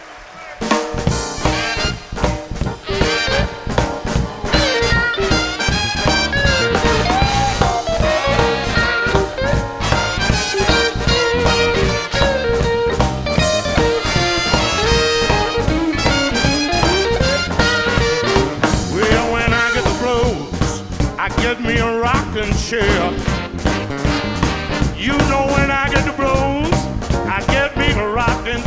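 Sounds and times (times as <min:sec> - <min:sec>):
jazz blues music: 0:00.6 - 0:28.6.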